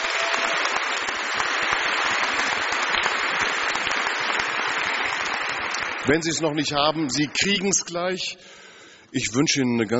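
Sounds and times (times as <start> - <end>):
applause for the IDEA team at a leadership congress: 0.0 - 7.1
speech: 6.1 - 9.9.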